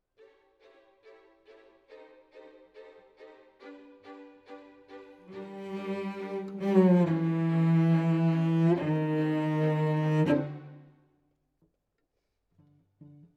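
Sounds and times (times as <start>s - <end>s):
cello solo: 3.3s - 10.9s.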